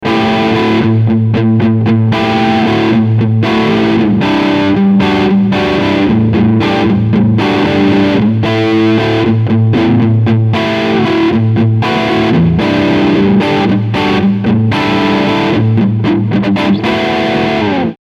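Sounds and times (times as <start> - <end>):
crunch guitar tone with both pickups: 0.0 - 18.0.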